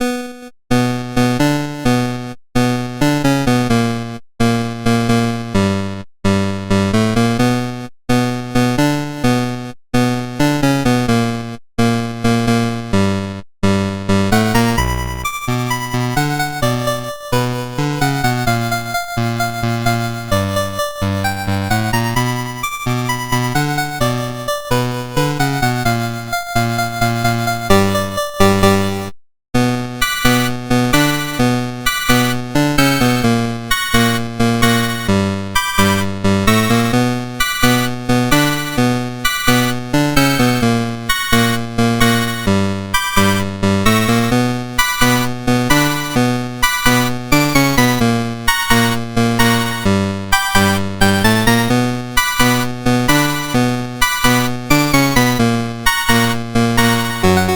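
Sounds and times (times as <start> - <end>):
chiptune music: 0.0 - 57.5.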